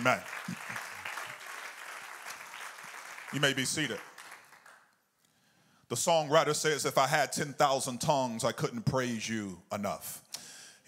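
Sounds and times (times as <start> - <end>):
speech: 0.0 - 0.6, 3.3 - 4.1, 5.9 - 10.8
audience clapping hands: 0.0 - 5.0.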